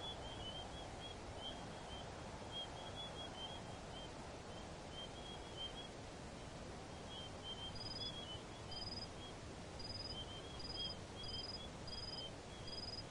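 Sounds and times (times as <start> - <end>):
crickets chirping in desert: 0.0 - 6.0, 7.0 - 13.1.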